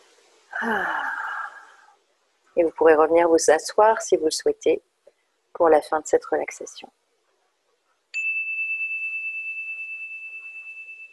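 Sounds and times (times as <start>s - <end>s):
speech: 0.6s - 1.0s, 2.6s - 4.9s, 5.6s - 7.0s
small chime ringing: 8.1s - 11.1s.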